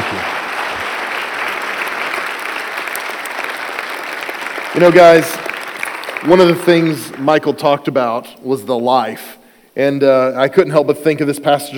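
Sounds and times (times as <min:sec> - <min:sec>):
audience applause: 0:00.0 - 0:07.4
speech: 0:04.8 - 0:05.4, 0:06.2 - 0:11.7.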